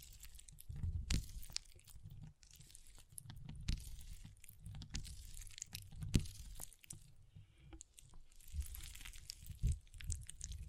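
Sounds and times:
water beads rumbling and rustling as handled: 0:00.0 - 0:07.2, 0:07.8 - 0:10.6.

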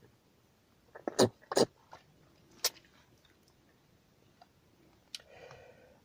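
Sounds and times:
person hawking loogies, clearing phlegm from throat: 0:00.9 - 0:01.8.

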